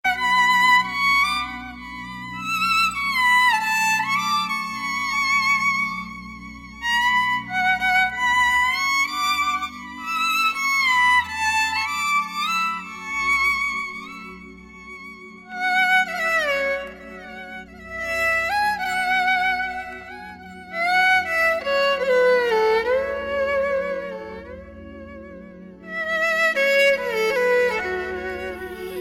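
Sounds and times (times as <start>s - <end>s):
sweet instrumental music: 0.0s - 29.0s.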